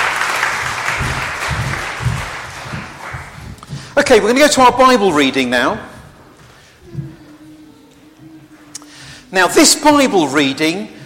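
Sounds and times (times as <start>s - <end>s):
room full of people clapping: 0.0s - 4.0s
speech: 4.1s - 5.9s, 9.3s - 11.0s.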